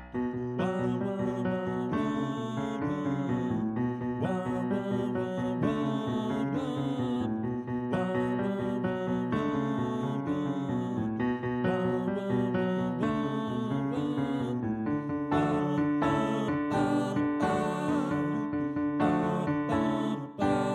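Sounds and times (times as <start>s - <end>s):
soprano voice: 0.2s - 20.7s.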